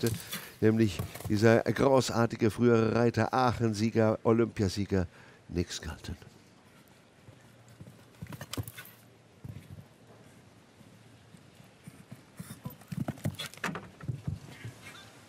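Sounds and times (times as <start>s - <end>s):
horse hooves clip-clopping: 0.0s - 1.9s, 6.7s - 15.0s
speech: 0.0s - 6.3s.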